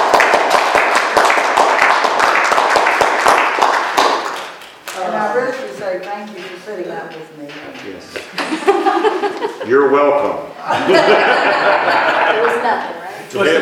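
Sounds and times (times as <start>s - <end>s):
applause: 0.0s - 5.1s
speech: 6.0s - 13.6s
laughter: 8.3s - 10.0s, 10.6s - 12.8s.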